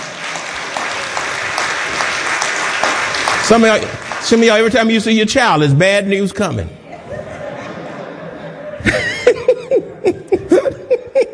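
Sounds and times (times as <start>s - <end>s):
audience clapping hands in praise: 0.0s - 5.1s
speech: 3.5s - 6.8s
laughter: 6.8s - 11.3s.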